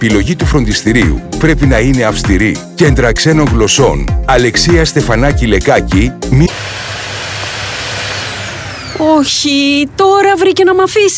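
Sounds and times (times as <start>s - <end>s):
speech: 0.0s - 6.9s, 9.0s - 11.1s
household vacuum cleaner running: 6.4s - 9.6s.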